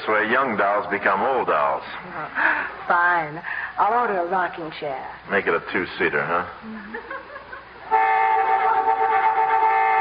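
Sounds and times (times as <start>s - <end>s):
speech: 0.1s - 7.3s
laughter: 6.7s - 8.0s
horn honking: 7.8s - 10.0s.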